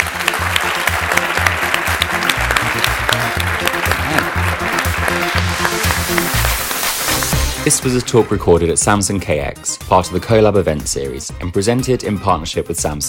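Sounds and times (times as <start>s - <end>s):
crowd applauding: 0.0s - 9.3s
speech: 7.7s - 13.0s.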